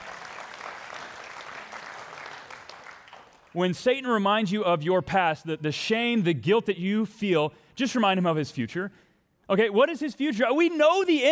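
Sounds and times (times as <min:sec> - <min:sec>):
audience applause: 0:00.0 - 0:03.6
speech: 0:03.6 - 0:11.3.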